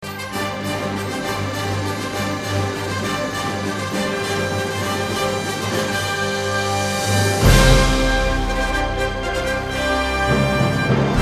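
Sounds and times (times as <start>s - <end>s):
intro music: 0.0s - 11.2s.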